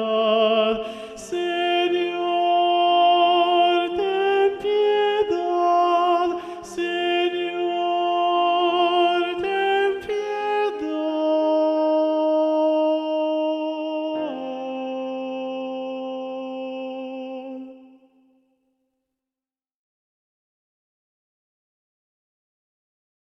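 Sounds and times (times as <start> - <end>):
predominant treble voice singing: 0.0 - 18.2.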